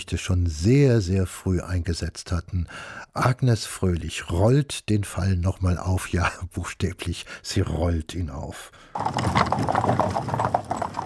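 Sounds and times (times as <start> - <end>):
speech: 0.0 - 10.8
horse hooves clip-clopping: 9.0 - 11.0
horse-drawn carriage rattling over rough ground: 9.0 - 11.0.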